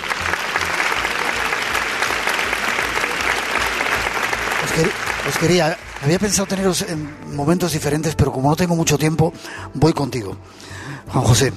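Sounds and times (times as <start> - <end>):
audience applause: 0.0 - 7.6
speech: 4.8 - 11.5.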